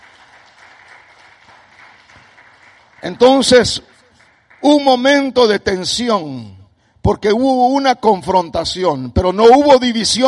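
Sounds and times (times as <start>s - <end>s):
audience applause: 0.0s - 4.9s
speech: 3.0s - 3.9s, 4.6s - 10.2s.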